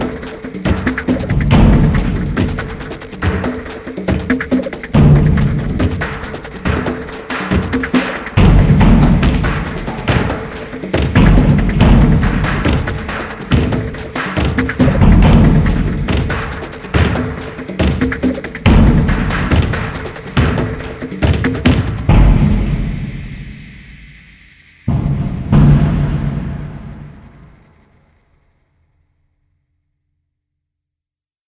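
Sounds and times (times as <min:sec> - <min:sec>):
percussion mix: 0:00.0 - 0:28.0.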